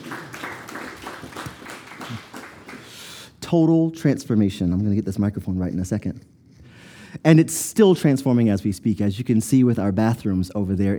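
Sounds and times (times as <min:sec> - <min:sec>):
audience clapping: 0:00.0 - 0:03.3
speech: 0:03.5 - 0:06.3, 0:07.2 - 0:10.9.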